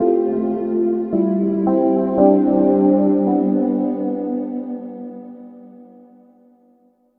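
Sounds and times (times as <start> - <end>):
angelic synth pad: 0.0 - 6.1.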